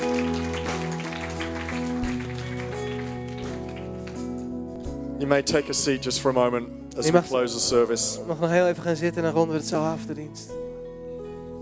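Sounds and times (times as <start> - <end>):
audience applause: 0.0 - 4.3
speech: 5.2 - 10.6.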